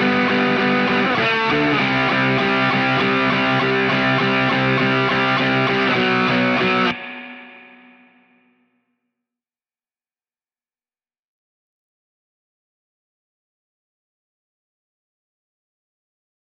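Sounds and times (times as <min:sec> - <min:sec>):
guitar: 0:00.0 - 0:09.2.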